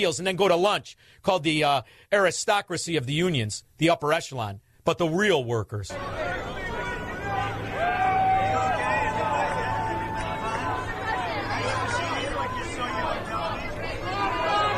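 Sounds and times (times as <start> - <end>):
speech: 0.0 - 6.5
crowd of workers shouting and cheering: 5.9 - 14.7.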